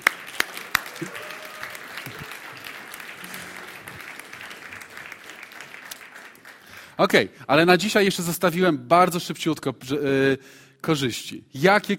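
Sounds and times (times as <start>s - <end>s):
audience applause: 0.0s - 6.9s
speech: 1.0s - 1.2s, 7.0s - 11.9s.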